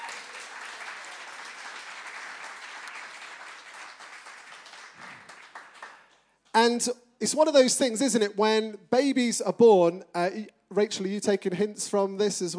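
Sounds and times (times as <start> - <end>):
round of applause: 0.0 - 6.3
speech: 6.6 - 12.5.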